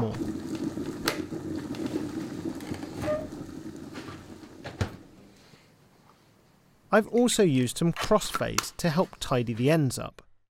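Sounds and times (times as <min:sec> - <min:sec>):
boiling water: 0:00.0 - 0:06.0
sharp pops and clicks: 0:00.2 - 0:03.0
speech: 0:06.9 - 0:10.2.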